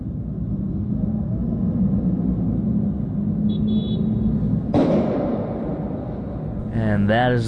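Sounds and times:
traffic rumble: 0:00.0 - 0:07.4
explosion heard through office window glass: 0:04.7 - 0:06.6.

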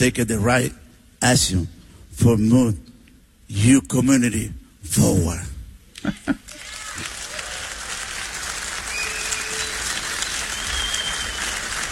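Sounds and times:
speech: 0:00.0 - 0:02.9, 0:03.5 - 0:07.2
audience applause: 0:06.4 - 0:11.9.

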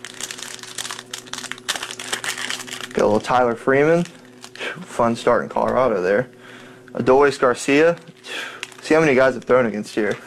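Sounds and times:
foil wrapper of a pack of 2026 Topps Series 1 baseball cards crinkling: 0:00.0 - 0:04.8, 0:07.2 - 0:10.2
speech: 0:03.0 - 0:04.2, 0:04.8 - 0:08.1, 0:08.9 - 0:10.2.

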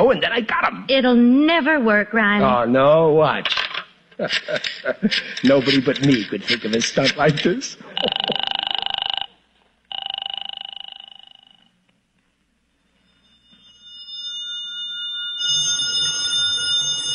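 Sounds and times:
speech: 0:00.0 - 0:03.6, 0:04.2 - 0:08.2
laughter: 0:04.2 - 0:08.6
telephone ringing: 0:07.9 - 0:11.8, 0:13.0 - 0:17.1.

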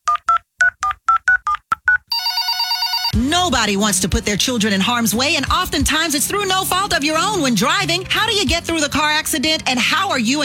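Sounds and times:
telephone keypad dialing tones: 0:00.1 - 0:03.2
speech: 0:03.2 - 0:10.4.

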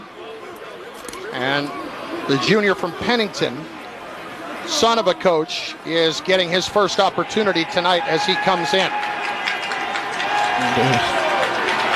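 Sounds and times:
stadium crowd cheering and applauding: 0:00.0 - 0:11.9
speech: 0:01.3 - 0:03.8, 0:04.7 - 0:09.1, 0:10.6 - 0:11.2.

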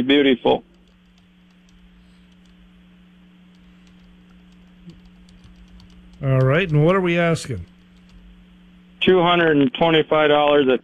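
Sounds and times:
speech: 0:00.0 - 0:00.7, 0:06.2 - 0:07.7, 0:09.0 - 0:10.8
low electrical hum: 0:00.0 - 0:10.8
typing on a computer keyboard: 0:00.7 - 0:02.6, 0:03.5 - 0:07.0, 0:07.6 - 0:08.2.

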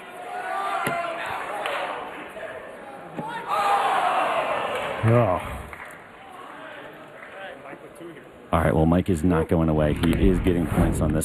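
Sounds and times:
loud arena crowd noise: 0:00.0 - 0:07.6
speech: 0:05.0 - 0:05.6, 0:08.5 - 0:11.2.

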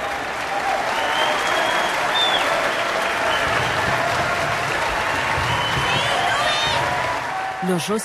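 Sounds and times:
audience standing ovation applause: 0:00.0 - 0:08.0.

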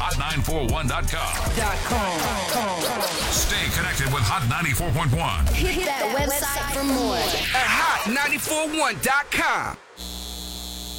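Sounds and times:
speech: 0:00.5 - 0:10.1
electrical humming from a data center: 0:10.0 - 0:10.9.

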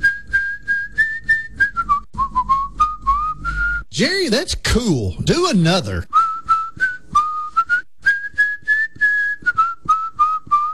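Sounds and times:
person whistling a melodic tune: 0:00.0 - 0:03.9, 0:06.1 - 0:10.7
speech: 0:04.0 - 0:06.2.

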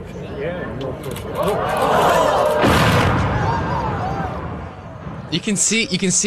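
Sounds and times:
crowd murmuring and exclaiming: 0:00.2 - 0:05.4
bridge demolition explosion: 0:02.6 - 0:05.9.

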